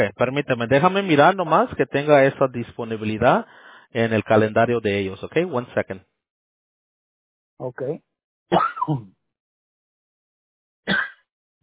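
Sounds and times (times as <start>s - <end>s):
speech: 0.0s - 6.1s, 7.6s - 9.2s, 10.9s - 11.1s
person coughing: 8.5s - 9.1s, 10.9s - 11.3s.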